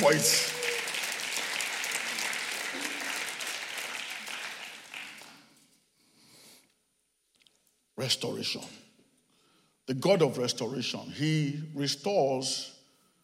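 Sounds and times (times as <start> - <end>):
speech: 0.0 - 0.6, 8.0 - 8.8, 9.9 - 12.8
audience applause: 0.0 - 5.5.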